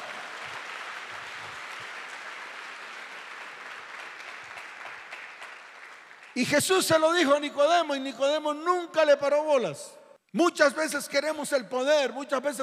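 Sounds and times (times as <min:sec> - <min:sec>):
audience applause: 0:00.0 - 0:06.4
speech: 0:06.4 - 0:12.6.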